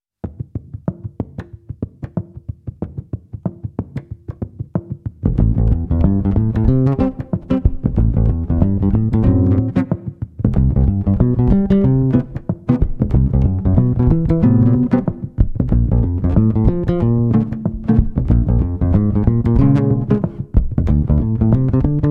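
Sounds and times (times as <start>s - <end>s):
acoustic music: 5.3s - 22.0s.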